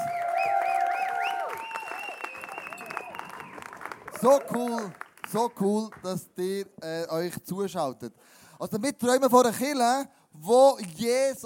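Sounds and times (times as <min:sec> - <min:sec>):
audience cheering: 0:00.0 - 0:04.9
audience clapping: 0:00.0 - 0:06.3
swooping whistles: 0:00.3 - 0:03.6
speech: 0:04.2 - 0:11.4.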